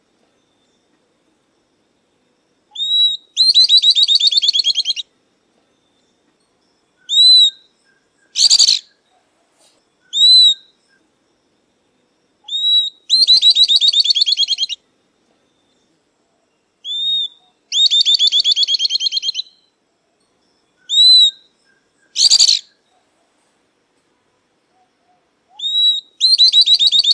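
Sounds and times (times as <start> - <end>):
southern beardless-tyrannulet song: 2.8 - 5.0, 7.0 - 9.0, 9.6 - 11.0, 12.5 - 14.8, 16.8 - 19.7, 20.8 - 22.8, 25.5 - 27.1.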